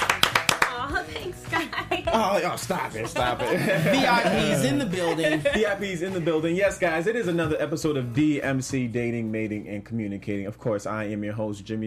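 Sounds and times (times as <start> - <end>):
hand claps: 0.0 - 1.7
people talking and laughing: 0.7 - 7.4
speech: 1.1 - 11.8.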